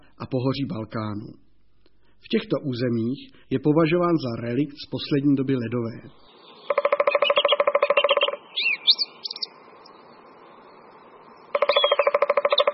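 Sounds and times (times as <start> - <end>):
speech: 0.3 - 1.4, 2.2 - 6.8
song thrush singing: 4.2 - 12.7.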